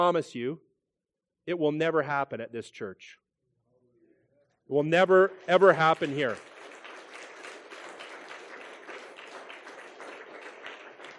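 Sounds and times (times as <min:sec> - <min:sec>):
speech: 0:00.0 - 0:00.7, 0:01.5 - 0:03.2, 0:04.7 - 0:06.5
audience applause: 0:05.5 - 0:11.1.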